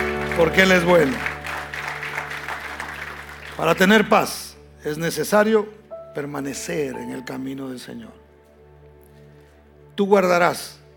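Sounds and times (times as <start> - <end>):
audience applauding loudly: 0.0 - 4.2
speech: 0.4 - 1.3, 3.6 - 8.2, 10.0 - 10.8.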